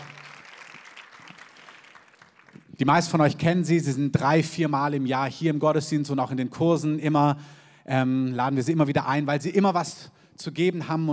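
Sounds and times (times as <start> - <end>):
audience applause: 0.0 - 2.8
speech: 2.8 - 11.1.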